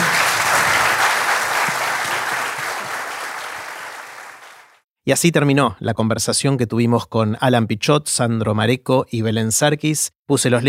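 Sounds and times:
audience applause: 0.0s - 4.8s
speech: 5.1s - 10.6s.

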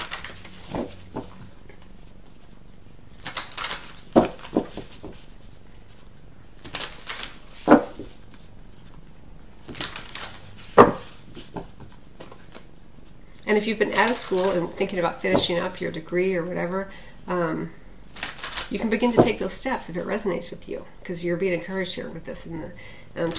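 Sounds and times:
Money Tarot card deck shuffling: 0.0s - 13.2s, 13.9s - 15.7s, 18.2s - 19.4s
speech: 13.5s - 17.8s, 18.7s - 23.3s.

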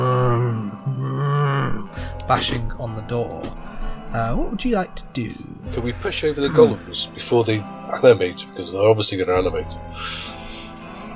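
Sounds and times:
zombie moaning: 0.0s - 2.1s, 6.4s - 6.9s
speech: 2.3s - 10.4s.

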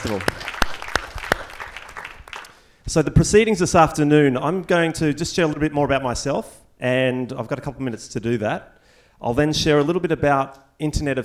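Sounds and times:
speech: 0.0s - 0.5s, 2.9s - 11.2s
audience applause: 0.0s - 2.6s.

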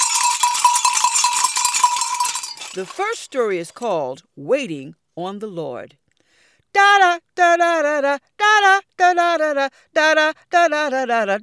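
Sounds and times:
hand bells ringing: 0.0s - 3.2s
speech: 2.8s - 6.0s, 6.8s - 11.4s.

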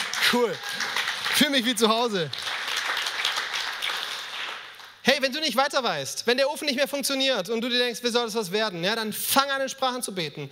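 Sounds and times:
audience clapping: 0.0s - 5.0s
speech: 0.3s - 2.4s, 5.2s - 10.5s.

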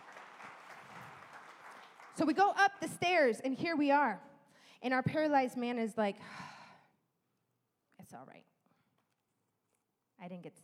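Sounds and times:
audience applause: 0.0s - 2.2s
speech: 2.2s - 6.6s, 8.1s - 8.5s, 10.2s - 10.6s.

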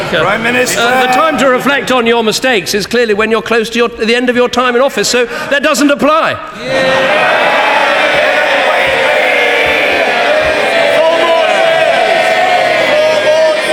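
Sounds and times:
speech: 0.1s - 7.6s
parliament crowd cheering and shouting: 6.6s - 13.7s.

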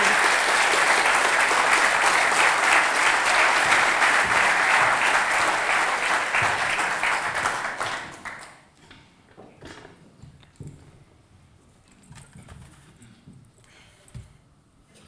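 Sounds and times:
audience applause: 0.0s - 8.6s.

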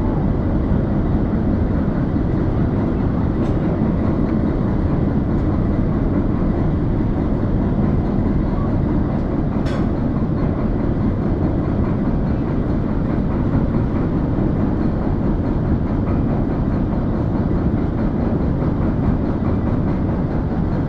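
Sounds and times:
Sandbanks Ferry engines and machinery rumbling: 0.0s - 20.8s
faint rattling and clanking: 9.2s - 20.8s.

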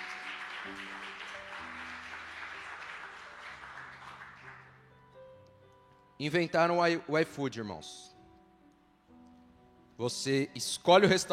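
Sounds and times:
audience applause: 0.0s - 4.8s
steady keyboard chords: 0.0s - 11.3s
speech: 0.7s - 1.2s, 6.2s - 8.1s, 10.0s - 11.3s.

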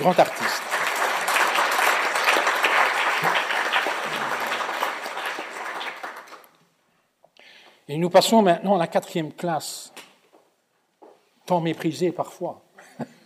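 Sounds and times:
speech: 0.0s - 0.6s, 7.9s - 10.0s, 11.5s - 13.1s
crowd applauding warmly: 0.0s - 6.6s.

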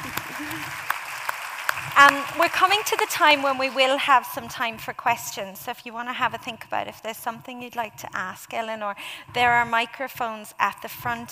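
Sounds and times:
clapping applause: 0.0s - 4.0s
speech: 2.0s - 11.3s.

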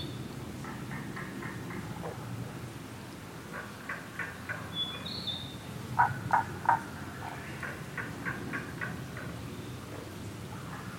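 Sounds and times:
forest noise hissing: 0.0s - 10.9s
Tago's brown frog calling: 6.0s - 6.8s.

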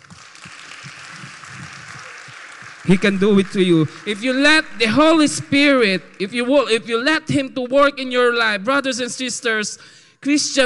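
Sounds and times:
audience clapping hands: 0.0s - 7.4s
speech: 2.8s - 10.6s.

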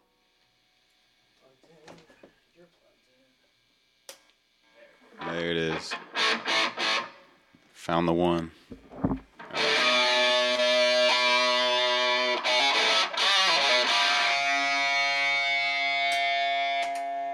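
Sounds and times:
speech: 5.1s - 6.5s, 7.9s - 9.2s
distorted electric guitar chord straight out of the amp: 5.3s - 7.2s, 9.0s - 16.9s.

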